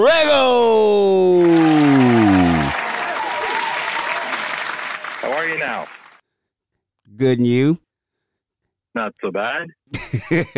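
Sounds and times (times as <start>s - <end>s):
speech: 0.0s - 0.9s, 7.2s - 7.8s, 9.0s - 10.5s
person calling out loudly: 0.0s - 2.7s
audience clapping to welcome a podcast guest: 0.4s - 6.2s.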